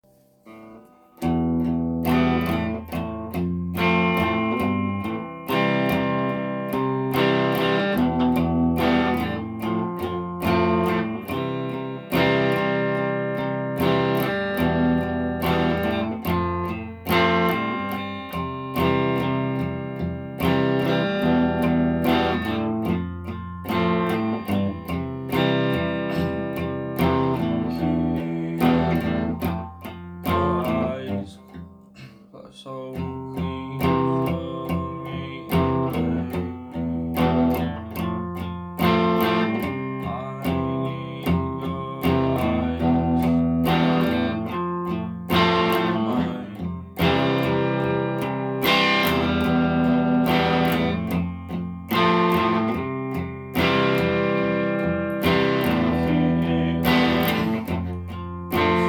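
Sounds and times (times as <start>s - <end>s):
E Fmaj7 C chord progression: 0.5s - 31.6s, 33.7s - 58.8s.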